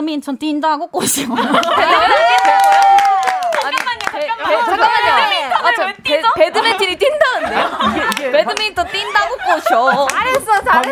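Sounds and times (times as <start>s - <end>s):
speech: 0.0s - 2.8s, 5.8s - 10.9s
laughter: 1.2s - 2.7s, 4.4s - 10.9s
hand clapping in a loose rhythm: 1.6s - 4.2s, 7.8s - 8.7s, 9.9s - 10.9s
several voices singing and talking together: 3.8s - 10.9s.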